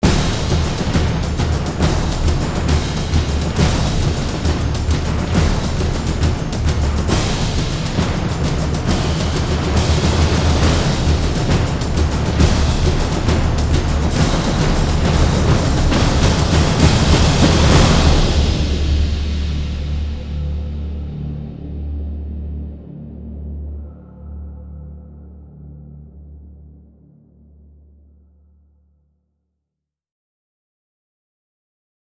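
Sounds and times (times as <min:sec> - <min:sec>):
choir singing: 0:00.0 - 0:20.2
orchestra playing: 0:00.0 - 0:20.2
drums: 0:00.0 - 0:21.8.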